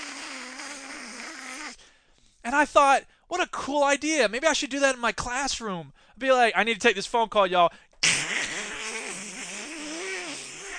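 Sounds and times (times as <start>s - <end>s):
voice imitating white noise: 0.0s - 1.8s, 8.0s - 10.7s
speech: 2.5s - 7.8s.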